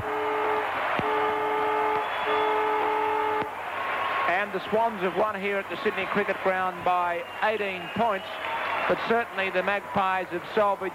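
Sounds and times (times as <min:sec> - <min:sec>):
stadium siren ending the match: 0:00.0 - 0:03.5
speech: 0:04.6 - 0:10.9.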